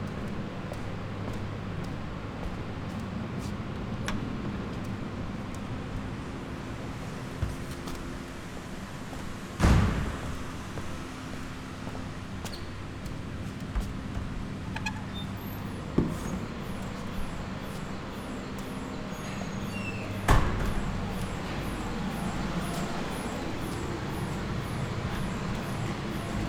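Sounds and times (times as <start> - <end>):
footsteps walking inside the La Silla NTT: 0.0 - 26.4.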